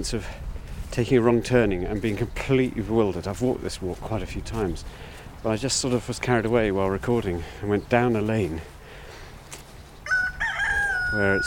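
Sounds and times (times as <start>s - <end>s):
speech: 0.0s - 8.8s, 11.1s - 11.4s
bantam rooster crowing: 10.0s - 11.4s.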